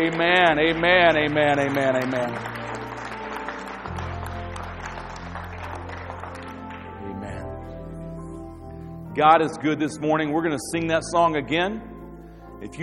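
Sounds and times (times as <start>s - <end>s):
speech: 0.0s - 2.6s, 9.2s - 11.9s, 12.6s - 12.8s
audience clapping in praise: 0.0s - 8.0s.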